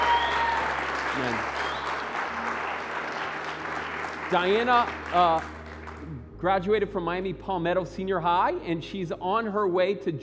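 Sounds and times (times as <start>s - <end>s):
round of applause: 0.0s - 6.3s
speech: 1.2s - 1.6s, 4.3s - 10.2s.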